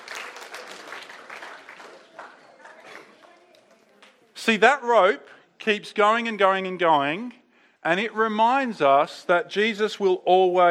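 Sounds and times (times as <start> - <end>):
audience applause: 0.0 - 3.4
speech: 4.4 - 10.6.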